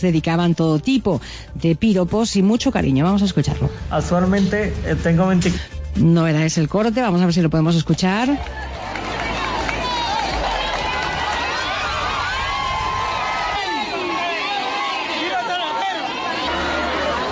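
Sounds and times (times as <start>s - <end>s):
speech: 0.0s - 8.7s
crowd chanting to greet the king in Talavera: 8.3s - 17.3s.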